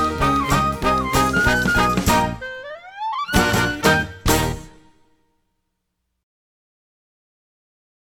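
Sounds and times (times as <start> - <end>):
instrumental music: 0.0 - 5.2.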